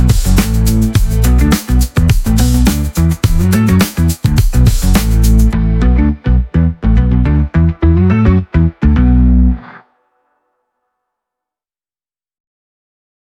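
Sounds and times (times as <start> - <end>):
105 bpm disco music: 0.0 - 9.8.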